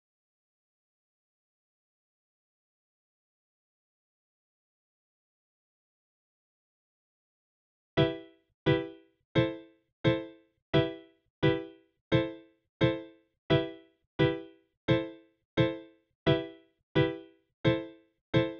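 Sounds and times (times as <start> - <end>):
piano: 8.0 - 18.5.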